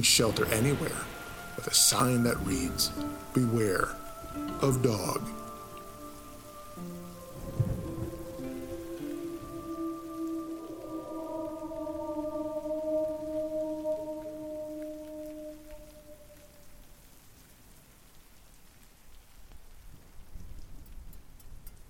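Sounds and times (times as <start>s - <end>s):
speech: 0.0s - 5.4s
sustained tonal drones: 0.0s - 16.6s
thunder rumble: 0.0s - 16.8s
steady rain: 0.0s - 21.8s.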